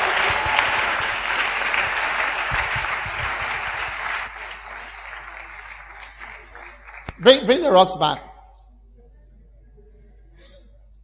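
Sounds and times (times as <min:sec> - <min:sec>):
audience applause: 0:00.0 - 0:07.7
speech: 0:07.2 - 0:08.3.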